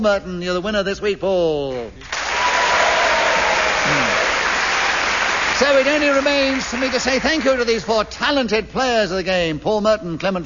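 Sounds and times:
speech: 0.0s - 2.2s, 3.9s - 4.2s, 5.6s - 10.4s
studio audience applause: 2.0s - 7.9s.

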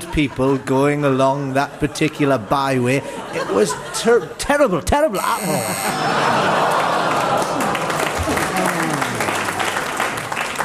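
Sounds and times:
laughter: 0.0s - 10.2s
speech: 0.2s - 6.8s
audience clapping: 6.4s - 10.6s.

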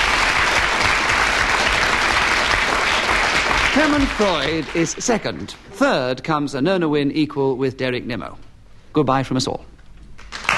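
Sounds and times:
audience applause: 0.0s - 5.6s, 10.2s - 10.5s
speech: 3.8s - 8.4s, 9.0s - 9.7s.

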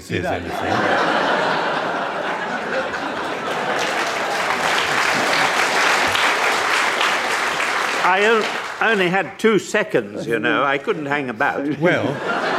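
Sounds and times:
speech: 0.0s - 1.0s, 8.0s - 12.4s
people chuckling: 0.0s - 6.5s, 11.6s - 12.5s
audience applause: 0.8s - 9.2s.

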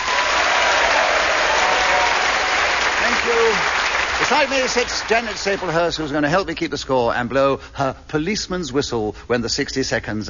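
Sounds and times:
audience applause: 0.0s - 6.2s
speech: 4.3s - 10.2s.

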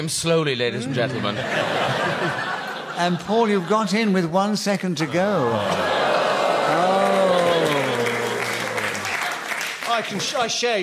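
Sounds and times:
speech: 0.0s - 6.0s, 6.7s - 7.0s, 10.0s - 10.8s
laughter: 0.8s - 9.5s
part of an audience clapping: 5.0s - 10.7s.

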